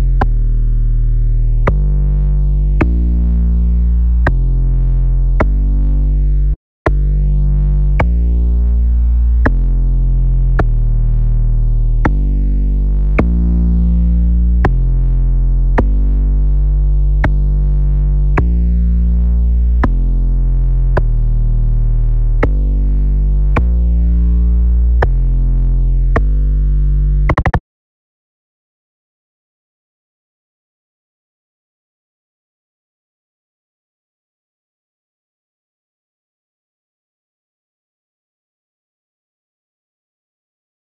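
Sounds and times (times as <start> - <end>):
sub bass: 0.0 - 27.6.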